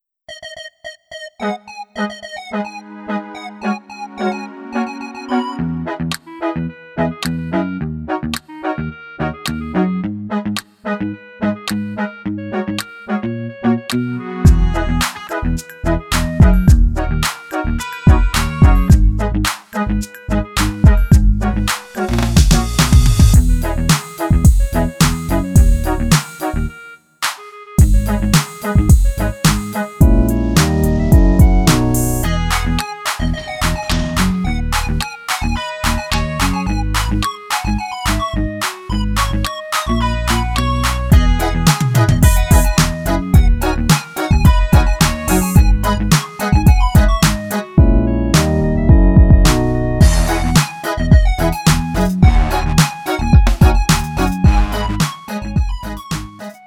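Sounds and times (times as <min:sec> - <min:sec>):
backing track melody lowered one key: 0:00.5 - 0:56.6
drum beat: 0:14.5 - 0:15.2, 0:16.4 - 0:16.9, 0:18.1 - 0:19.7, 0:20.8 - 0:26.4, 0:27.2 - 0:32.2, 0:41.1 - 0:48.0, 0:48.9 - 0:56.2.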